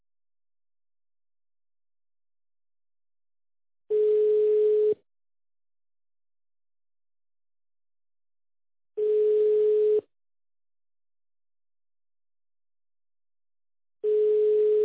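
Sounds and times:
telephone line tones during a call transfer: 3.9s - 5.0s, 9.0s - 10.1s, 14.1s - 14.8s.

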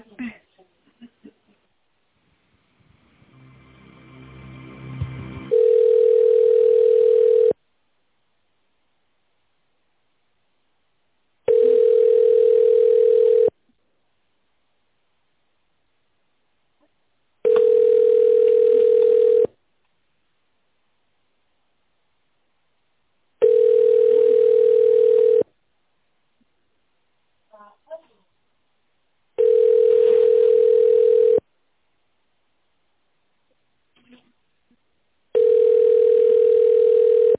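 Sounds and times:
telephone ringback tone while a call is being transferred: 5.5s - 7.6s, 11.5s - 13.5s, 17.4s - 19.5s, 23.4s - 25.4s, 29.4s - 31.4s, 35.4s - 37.3s.

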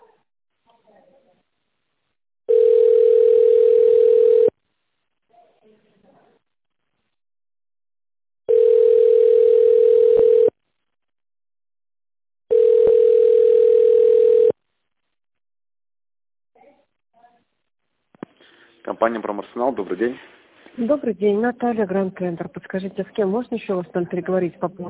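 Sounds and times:
telephone ringback tone: 2.5s - 4.5s, 8.5s - 10.5s, 12.5s - 14.6s
speech: 19.0s - 24.8s.

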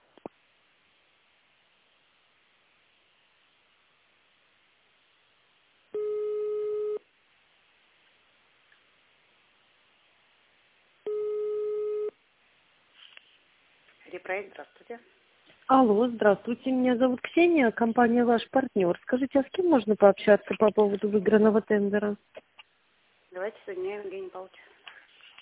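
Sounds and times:
telephone ringback tones while waiting for a call to connect: 6.0s - 7.0s, 11.1s - 12.1s
speech: 14.1s - 22.4s, 23.4s - 24.7s.

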